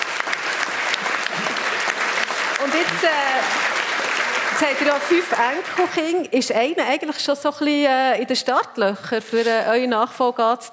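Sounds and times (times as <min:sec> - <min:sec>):
audience applause: 0:00.0 - 0:06.3
speech: 0:02.6 - 0:03.7, 0:04.6 - 0:10.7.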